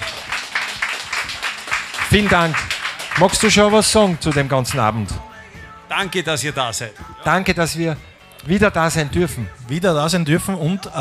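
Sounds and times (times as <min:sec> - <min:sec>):
crowd applauding: 0:00.0 - 0:05.2
speech: 0:02.1 - 0:05.3, 0:06.0 - 0:10.9.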